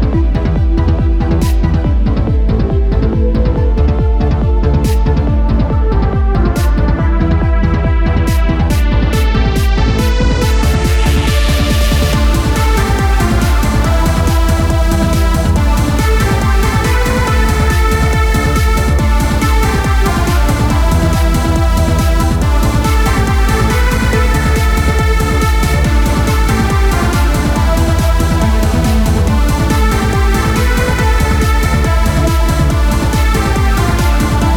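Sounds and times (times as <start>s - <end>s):
ocean trance music: 0.0s - 34.5s.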